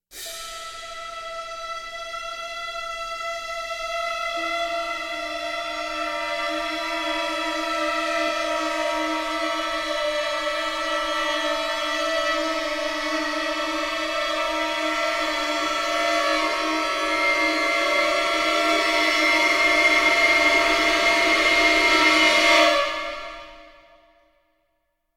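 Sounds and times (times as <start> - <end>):
short suspense music: 0.2 - 23.7.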